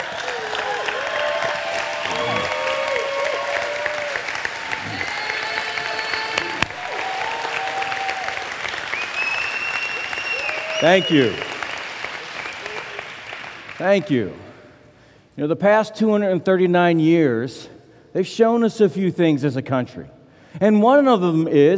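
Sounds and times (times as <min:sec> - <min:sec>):
audience round of applause: 0:00.0 - 0:13.8
speech: 0:10.8 - 0:11.5, 0:13.8 - 0:14.4, 0:15.4 - 0:21.7.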